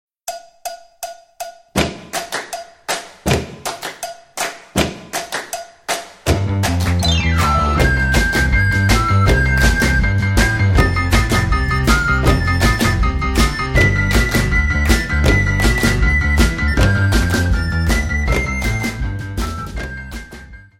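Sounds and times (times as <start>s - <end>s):
instrumental music: 0.3s - 20.7s.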